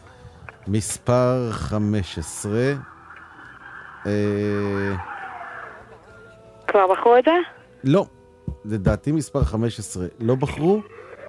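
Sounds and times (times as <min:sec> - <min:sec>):
speech: 0:00.7 - 0:02.9, 0:04.0 - 0:05.2, 0:06.8 - 0:11.0
ambulance sirens wailing: 0:02.9 - 0:06.1.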